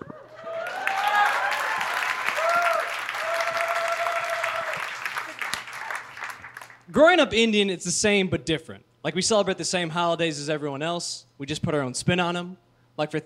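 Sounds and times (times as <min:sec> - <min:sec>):
audience applause: 0:00.0 - 0:06.9
speech: 0:06.9 - 0:13.2.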